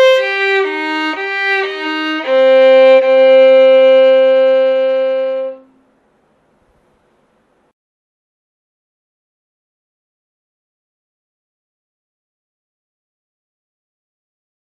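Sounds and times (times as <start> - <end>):
scale and arpeggios in C minor: 0.0 - 5.7.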